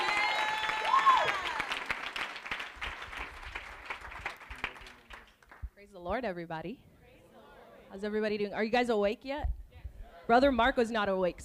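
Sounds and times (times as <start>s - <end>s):
cheer: 0.0s - 2.4s
audience clapping to welcome a speaker at a church conference: 0.0s - 5.7s
speech: 6.1s - 6.9s, 7.9s - 9.6s, 10.3s - 11.4s.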